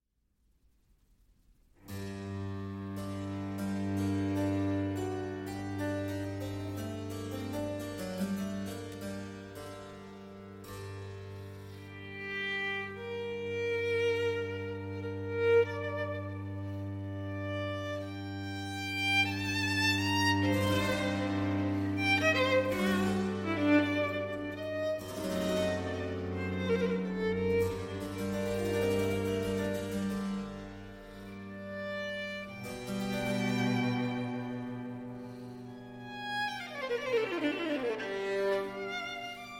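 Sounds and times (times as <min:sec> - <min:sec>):
slow violin sonata movement in G minor: 0:01.8 - 0:39.5.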